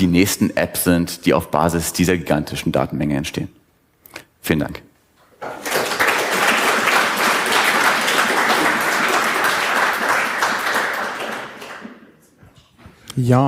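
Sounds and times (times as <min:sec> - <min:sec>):
speech: 0:00.0 - 0:03.6, 0:04.4 - 0:05.6, 0:13.2 - 0:13.4
audience applause: 0:05.4 - 0:12.1.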